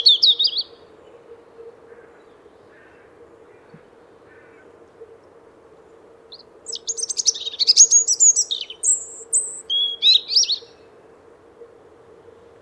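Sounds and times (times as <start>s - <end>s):
European robin singing: 0.0s - 0.8s, 6.3s - 10.9s.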